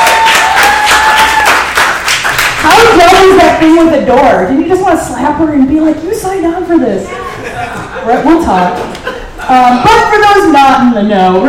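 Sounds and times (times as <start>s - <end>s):
high whistle or cheer: 0.0s - 1.6s
crowd applause: 0.0s - 3.0s
speech: 3.3s - 7.2s, 8.0s - 8.9s, 9.5s - 11.4s
laughter: 7.0s - 10.1s.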